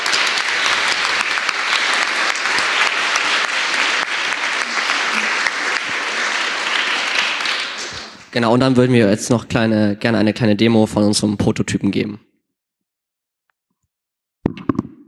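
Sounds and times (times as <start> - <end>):
audience applause: 0.0 - 8.4
speech: 8.4 - 12.3.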